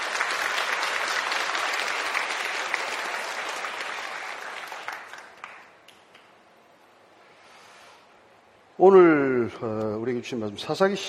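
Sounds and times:
audience applause: 0.0 - 6.3
speech: 8.8 - 11.0.

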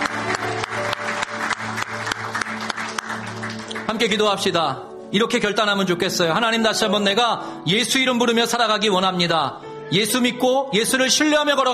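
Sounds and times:
audience applause: 0.0 - 4.1
speech: 4.0 - 11.7.

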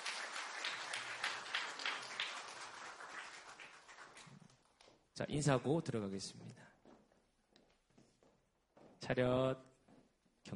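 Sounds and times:
audience applause at graduation ceremony: 0.0 - 4.6
speech: 5.2 - 6.6, 9.1 - 9.7.

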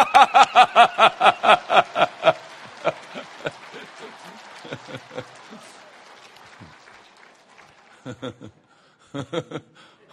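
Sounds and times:
hearty group laughter: 0.0 - 5.8, 7.9 - 10.1
crowd clapping in rhythm: 0.0 - 8.7.

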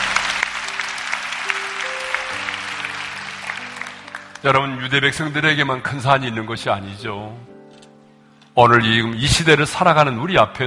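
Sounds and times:
audience applause: 0.0 - 4.7
speech: 4.4 - 7.5, 8.6 - 10.6.

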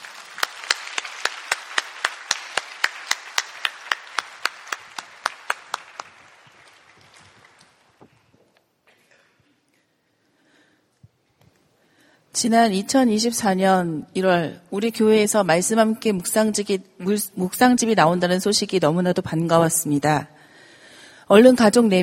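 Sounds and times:
audience clapping in unison to welcome speaker: 0.0 - 8.3
speech: 12.4 - 20.4, 21.3 - 22.0.

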